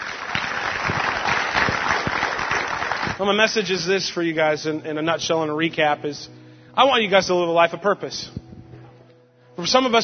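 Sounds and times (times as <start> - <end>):
audience clapping after a sermon: 0.0 - 3.4
speech: 3.2 - 8.4, 9.6 - 10.0.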